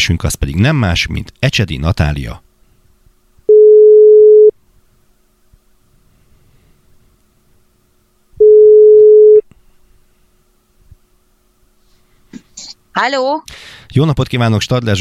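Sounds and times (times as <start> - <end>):
speech: 0.0 - 2.4, 13.0 - 14.9
telephone ringback tones while calling a prize winner: 3.5 - 4.5, 8.4 - 9.4.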